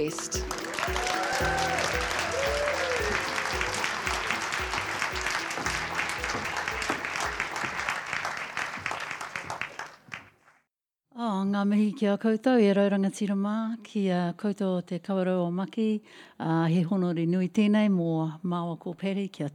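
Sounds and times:
speech: 0.0s - 1.5s, 11.6s - 19.5s
audience applause welcoming performers at the Going West event: 0.3s - 10.4s.

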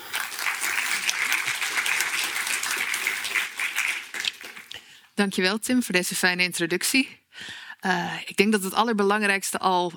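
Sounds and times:
audience applause: 0.0s - 4.7s
speech: 5.2s - 9.9s.

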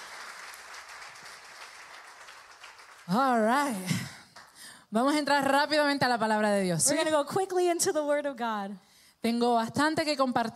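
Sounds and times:
crowd applauding: 0.0s - 3.4s
speech: 3.1s - 4.2s, 4.9s - 10.5s.

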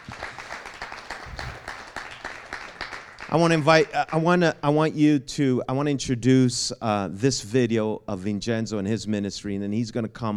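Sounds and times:
audience clapping: 0.0s - 4.5s
speech: 3.3s - 10.3s.

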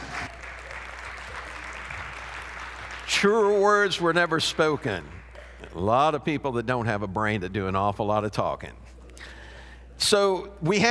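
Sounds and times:
audience applause: 0.0s - 5.6s
speech: 3.1s - 9.3s, 10.0s - 10.9s.

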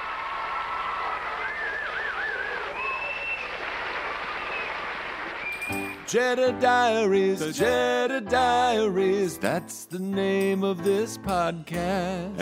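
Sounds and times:
rousing applause: 0.0s - 6.1s
speech: 6.1s - 12.4s.

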